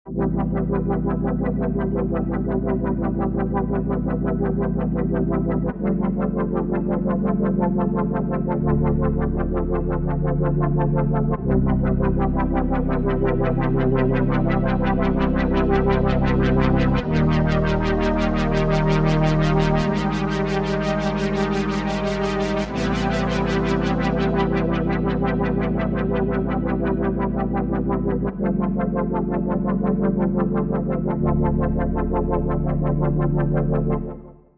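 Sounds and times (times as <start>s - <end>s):
synth pad: 0.1s - 34.2s.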